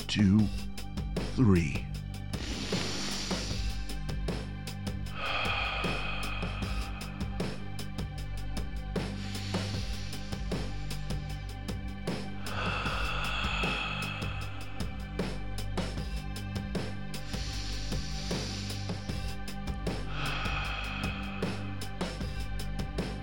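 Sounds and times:
tonal background: 0.0s - 23.2s
speech: 0.1s - 0.6s, 1.4s - 1.9s
group of people taking big deep breaths: 2.4s - 4.0s, 5.1s - 7.8s, 9.2s - 10.8s, 12.4s - 14.9s, 17.3s - 19.2s, 20.0s - 22.2s.

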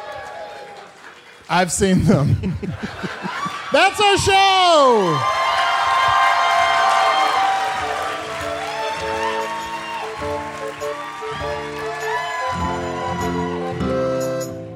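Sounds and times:
audience applause: 0.0s - 14.5s
speech: 1.5s - 5.4s
audience laughter: 1.8s - 4.0s.

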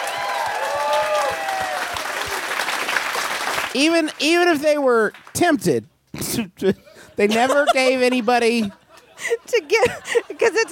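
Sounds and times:
whistles and cheers: 0.0s - 2.4s
crowd applauding: 0.0s - 4.2s
speech: 3.7s - 10.7s
laughter: 6.7s - 10.7s.

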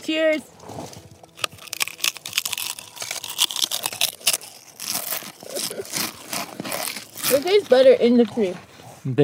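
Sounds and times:
speech: 0.0s - 0.9s, 7.4s - 9.2s
crunching Pringles potato chips: 1.0s - 8.0s.

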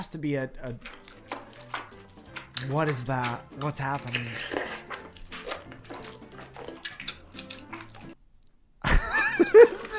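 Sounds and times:
speech: 0.0s - 1.0s, 2.6s - 4.6s
wet chewing and slurping of noodles: 0.6s - 8.2s, 9.6s - 9.9s.

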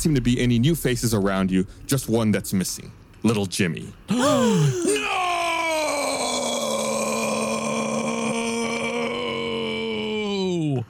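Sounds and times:
speech: 0.0s - 4.9s
yell turning into a burp: 4.1s - 10.3s.

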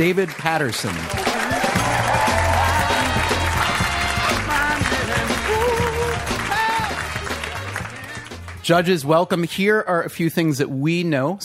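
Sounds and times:
speech: 0.0s - 1.4s, 8.7s - 11.4s
audience applause welcoming judges onto a show: 0.0s - 8.8s.

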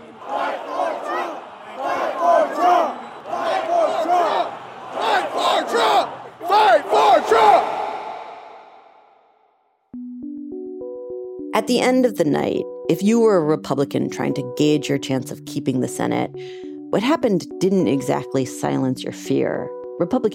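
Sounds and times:
crowd chanting at a political rally: 0.0s - 9.4s
speech: 11.6s - 20.3s.

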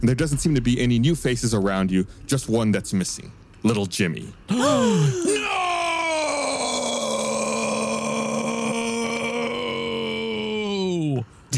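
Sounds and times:
speech: 0.0s - 5.6s
yell turning into a burp: 4.5s - 11.0s.

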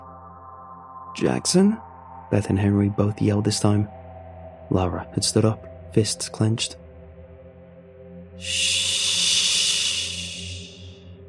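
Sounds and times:
speech: 1.2s - 4.0s, 4.7s - 6.8s, 8.4s - 9.1s
eerie breathy hiss: 8.4s - 11.2s.

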